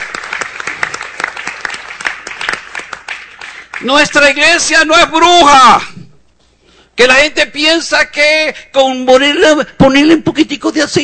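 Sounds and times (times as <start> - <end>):
audience applause: 0.0 - 3.9
speech: 3.8 - 5.9, 7.0 - 11.0.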